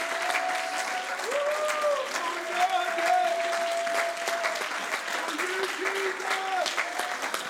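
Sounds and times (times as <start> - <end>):
audience clapping hands: 0.0 - 7.4.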